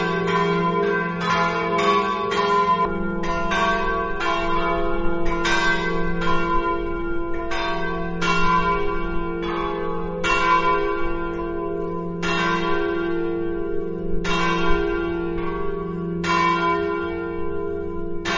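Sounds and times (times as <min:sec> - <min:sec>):
bells in Palma: 0:00.0 - 0:18.3.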